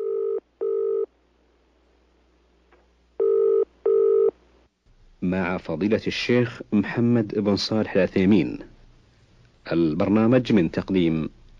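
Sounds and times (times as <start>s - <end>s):
telephone line tones: 3.2s - 4.3s
speech: 5.3s - 8.7s, 9.7s - 11.4s.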